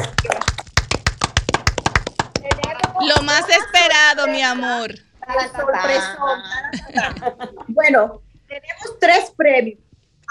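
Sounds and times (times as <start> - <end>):
hand clapping: 0.0 - 3.5
laughter: 3.1 - 4.1, 6.5 - 7.8
speech: 3.3 - 10.3.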